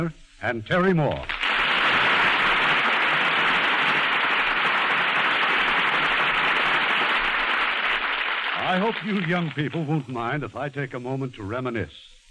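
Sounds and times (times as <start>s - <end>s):
speech: 0.0s - 1.4s, 8.7s - 12.1s
studio audience applause: 1.2s - 10.1s.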